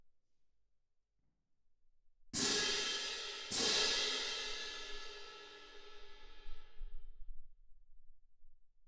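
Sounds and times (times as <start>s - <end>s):
percussion: 2.4s - 7.2s.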